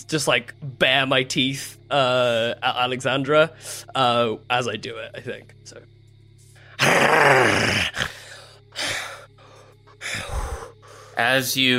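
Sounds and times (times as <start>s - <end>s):
speech: 0.0s - 5.9s, 11.2s - 11.7s
person growling imitating a giant honey badger: 6.8s - 9.2s, 10.0s - 10.7s.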